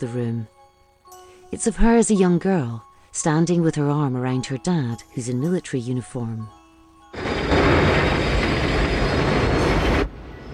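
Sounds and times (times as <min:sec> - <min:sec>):
speech: 0:00.0 - 0:00.6, 0:01.5 - 0:07.3
rattling train wagons: 0:07.2 - 0:10.2
train rumble in a tunnel: 0:07.2 - 0:10.5.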